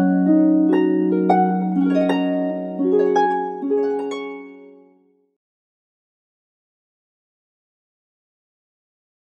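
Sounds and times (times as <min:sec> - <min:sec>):
harp solo: 0:00.0 - 0:05.1.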